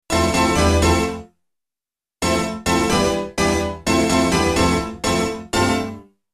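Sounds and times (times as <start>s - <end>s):
keyboard playing: 0.1s - 1.2s, 2.2s - 6.0s.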